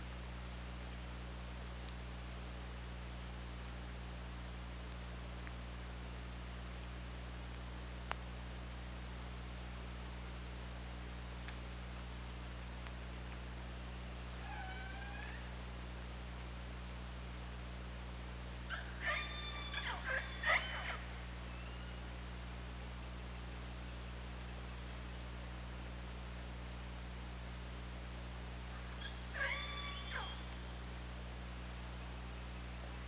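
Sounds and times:
constant low hum: 0.0s - 33.0s
killer whale calls: 14.4s - 15.5s, 29.0s - 30.5s.

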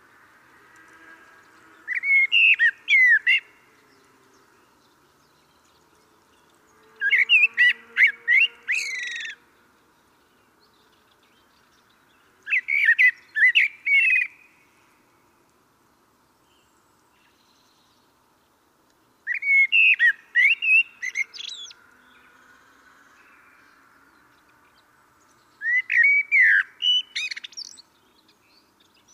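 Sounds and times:
common blackbird calling: 1.9s - 3.6s, 7.0s - 9.4s, 12.5s - 14.5s, 19.3s - 21.8s, 25.6s - 27.8s.

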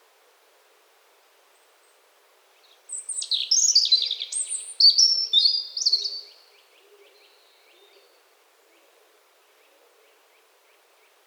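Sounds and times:
European robin singing: 2.9s - 6.4s.

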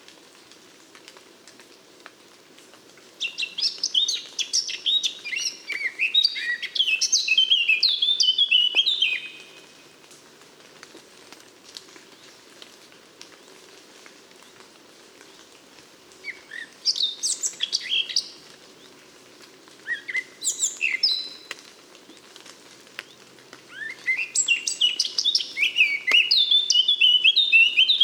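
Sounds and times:
Eurasian blackcap warbling song: 3.2s - 9.6s, 16.4s - 18.4s, 19.9s - 21.5s, 23.0s - 28.0s.

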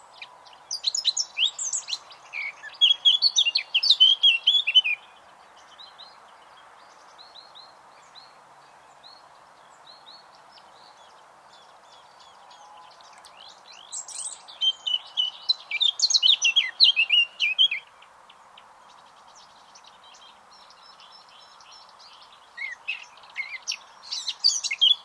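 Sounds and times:
Eurasian blackcap warbling song: 0.0s - 5.1s, 11.6s - 25.0s.

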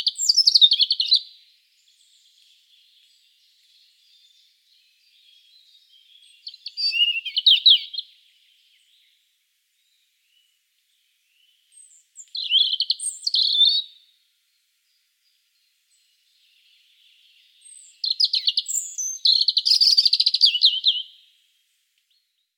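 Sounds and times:
European robin song: 0.0s - 22.5s.

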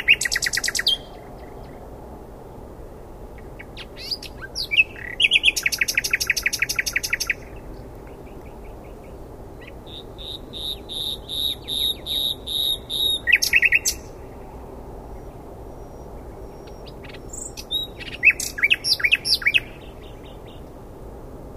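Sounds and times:
common nightingale song: 0.0s - 1.9s, 2.9s - 20.9s.

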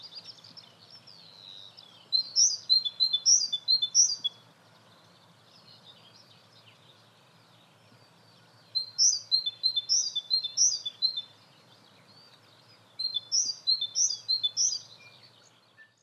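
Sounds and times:
great tit calls: 0.0s - 15.7s.

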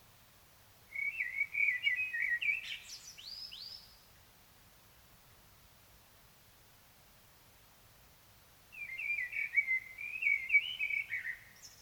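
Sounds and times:
common blackbird song: 0.9s - 4.1s, 8.7s - 11.8s.

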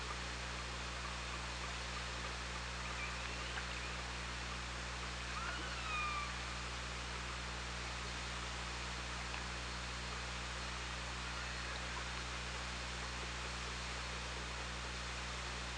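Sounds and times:
low engine-like hum: 0.0s - 15.7s
killer whale call: 5.3s - 6.5s.

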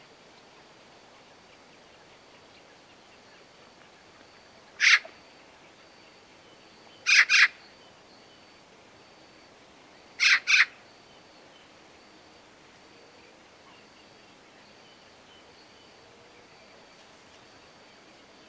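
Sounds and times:
Eurasian magpie harsh rasping calls, Pica pica: 4.8s - 5.0s, 7.1s - 7.5s, 10.2s - 10.7s.

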